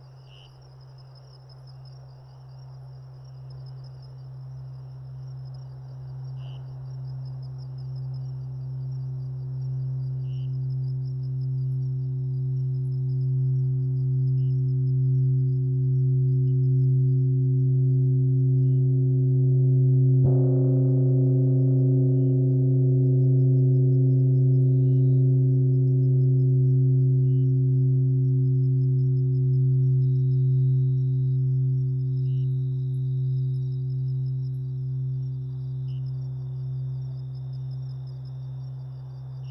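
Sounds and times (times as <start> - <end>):
crickets chirping: 0.0 - 39.4
gongs: 20.1 - 34.9.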